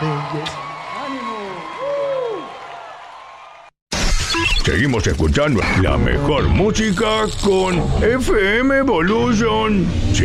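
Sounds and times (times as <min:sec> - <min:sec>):
applause: 0:00.0 - 0:03.7
speech: 0:04.8 - 0:10.2.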